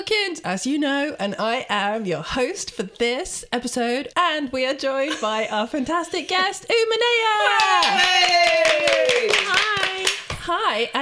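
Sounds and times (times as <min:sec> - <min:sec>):
speech: 0:00.0 - 0:10.9
hand clapping: 0:07.6 - 0:10.5.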